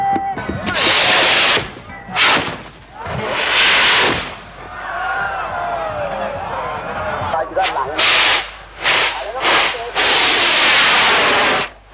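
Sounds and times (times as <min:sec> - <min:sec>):
crowd voices and shouts: 0:00.4 - 0:10.1
bamboo rockets launching into the sky: 0:00.8 - 0:04.5, 0:07.6 - 0:11.8.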